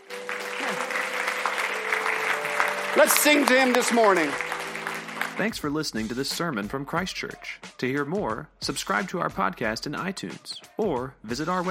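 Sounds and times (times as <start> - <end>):
audience applause: 0.0 - 5.6
speech: 3.0 - 4.5, 5.4 - 11.7.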